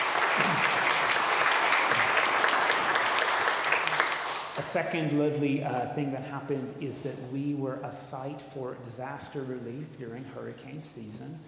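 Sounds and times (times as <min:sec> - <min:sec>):
applause: 0:00.0 - 0:04.7
speech: 0:04.6 - 0:11.4.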